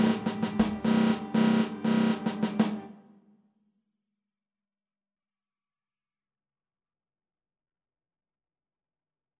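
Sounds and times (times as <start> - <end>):
snare drum: 0.0 - 3.0.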